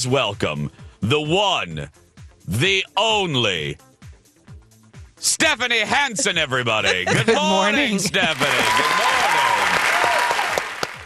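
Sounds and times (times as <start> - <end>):
speech: 0.0 - 3.9, 5.2 - 9.5
laughter: 5.8 - 9.8
studio audience clapping to welcome a morning-show host: 7.0 - 11.0.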